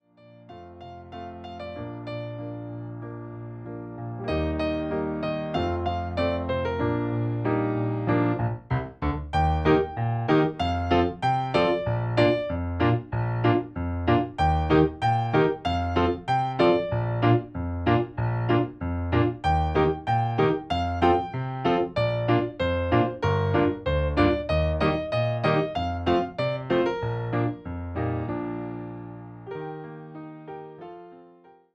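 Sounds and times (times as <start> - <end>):
instrumental music: 0.0 - 31.6.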